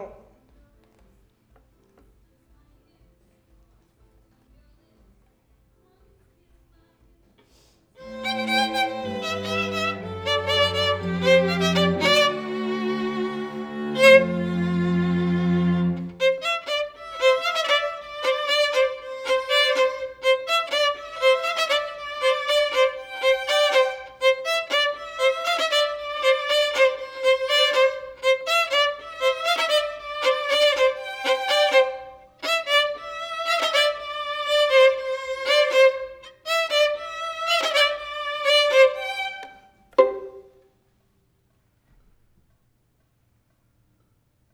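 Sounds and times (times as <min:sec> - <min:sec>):
violin: 0:08.0 - 0:40.6.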